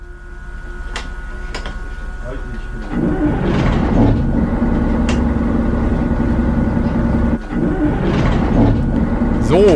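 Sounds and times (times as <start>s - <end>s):
train's two engines starting up: 2.2s - 9.7s.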